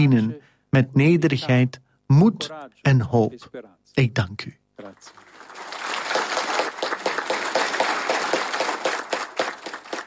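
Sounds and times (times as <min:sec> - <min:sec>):
speech: 0:00.0 - 0:05.3
applause from the cardinals: 0:04.8 - 0:10.0.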